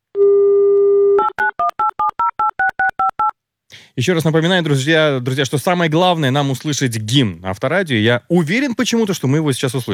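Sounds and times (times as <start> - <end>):
telephone dial tone: 0.2 - 3.3
speech: 4.0 - 9.9.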